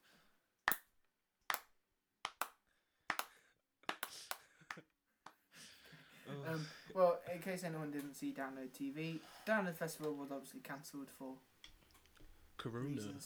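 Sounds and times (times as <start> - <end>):
slow clap: 0.7 - 0.9, 1.5 - 1.7, 2.3 - 5.4
speech: 6.3 - 11.5, 12.6 - 13.2.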